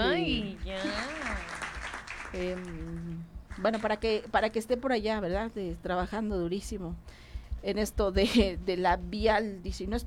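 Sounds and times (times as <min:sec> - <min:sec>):
audience applause: 0:00.8 - 0:02.7
speech: 0:02.3 - 0:10.0.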